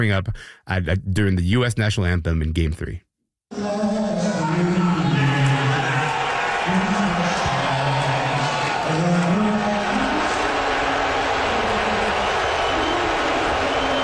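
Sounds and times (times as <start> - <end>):
speech: 0.0 - 3.9
crowd at Madison Square Garden booing Donald Trump: 3.6 - 14.0.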